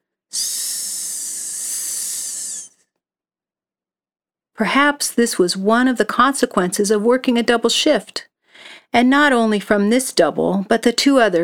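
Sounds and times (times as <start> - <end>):
blood pressure cuff hissing: 0.4 - 2.7
speech: 4.6 - 11.4.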